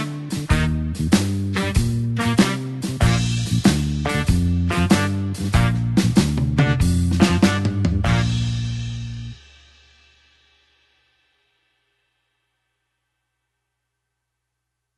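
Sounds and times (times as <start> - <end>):
blues horns shuffle in B flat: 0.0 - 9.8.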